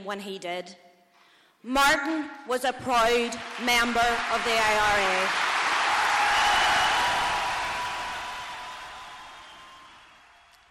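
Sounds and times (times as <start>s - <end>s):
speech: 0.0s - 0.9s, 1.6s - 5.5s
audience applause: 3.4s - 10.6s.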